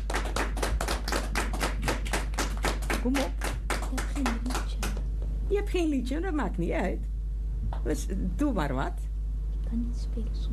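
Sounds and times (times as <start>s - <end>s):
audience clapping urging on a clarinet player: 0.0s - 5.1s
speech: 3.0s - 4.6s, 5.6s - 7.1s, 7.8s - 9.1s, 9.7s - 10.5s.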